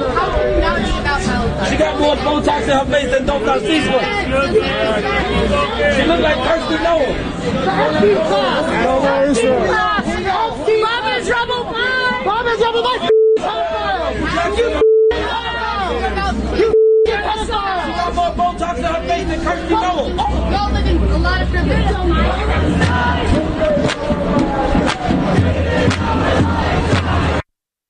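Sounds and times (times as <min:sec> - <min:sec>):
large crowd shouting and chanting: 0:00.0 - 0:27.4
speech: 0:01.7 - 0:10.2
steady electronic tone beeping: 0:13.1 - 0:13.4, 0:14.8 - 0:15.2, 0:16.7 - 0:17.2.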